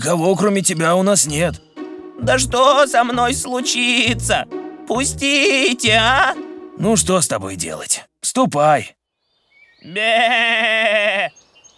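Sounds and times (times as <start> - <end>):
speech: 0.0 - 9.0, 9.8 - 11.4
goat bleating: 9.9 - 11.3.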